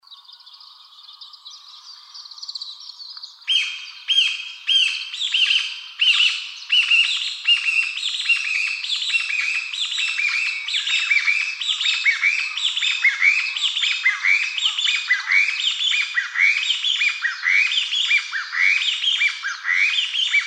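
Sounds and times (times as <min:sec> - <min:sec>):
Chinese bamboo partridge calling: 0:00.8 - 0:20.4.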